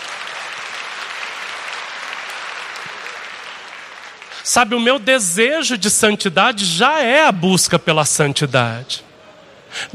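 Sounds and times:
audience applauding loudly: 0.0s - 4.5s
speech: 4.4s - 9.1s.

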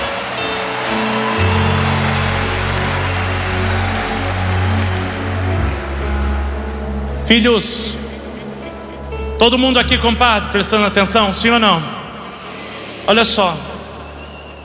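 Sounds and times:
audience applause: 0.0s - 6.9s, 11.7s - 14.6s
speech: 7.3s - 8.0s, 9.4s - 12.0s, 13.1s - 13.7s.

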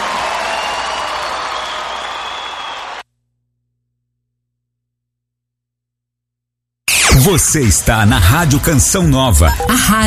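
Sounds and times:
audience applause: 0.0s - 3.0s
speech: 7.2s - 10.0s.

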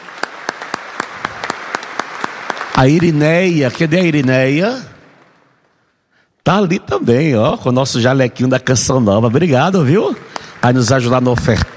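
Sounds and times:
audience applause: 0.0s - 5.4s, 9.7s - 11.7s
speech: 2.8s - 4.9s, 6.4s - 11.7s.

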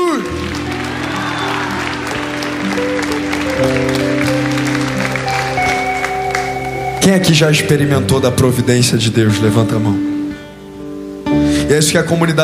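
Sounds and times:
audience applause: 0.0s - 7.3s
speech: 7.1s - 10.1s, 11.7s - 12.4s.

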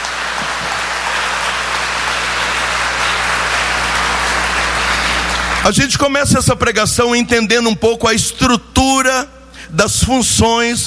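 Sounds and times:
audience applauding loudly: 0.0s - 6.1s
speech: 5.6s - 10.8s.

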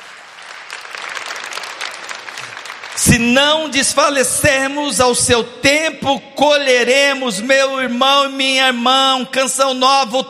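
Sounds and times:
audience applause: 0.0s - 3.4s
speech: 3.0s - 10.2s.

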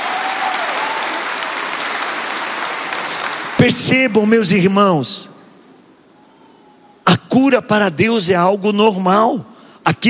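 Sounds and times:
audience applauding: 0.0s - 4.1s
speech: 3.6s - 5.4s, 7.4s - 10.0s.

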